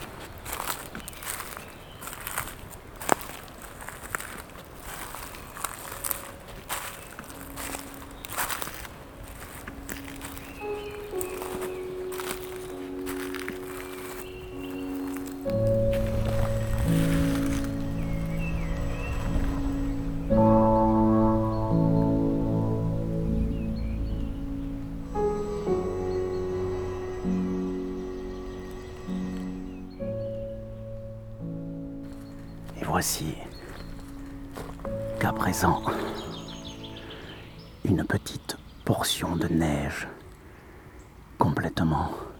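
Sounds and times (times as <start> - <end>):
footsteps crunching along the ground: 0.0 - 38.4
faint bird chirps: 0.0 - 42.3
sustained melodic tones: 4.8 - 38.1
speech: 33.0 - 33.4, 35.4 - 36.2, 39.3 - 40.2.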